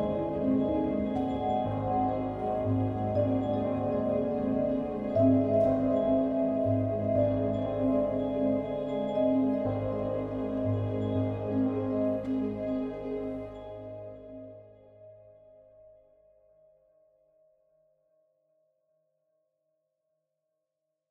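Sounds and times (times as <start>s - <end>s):
high energy film score: 0.0s - 15.0s.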